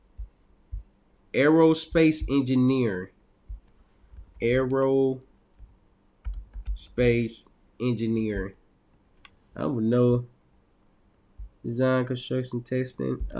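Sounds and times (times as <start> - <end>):
speech: 1.4 - 3.2, 4.4 - 5.3, 6.8 - 8.6, 9.6 - 10.3, 11.6 - 13.3
typing on a computer keyboard: 6.2 - 6.9.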